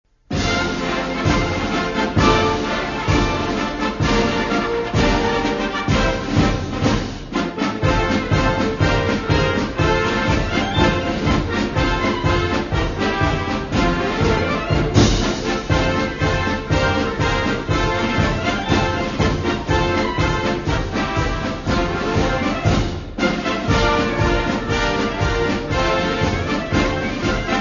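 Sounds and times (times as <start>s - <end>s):
instrumental military march: 0.3s - 27.5s.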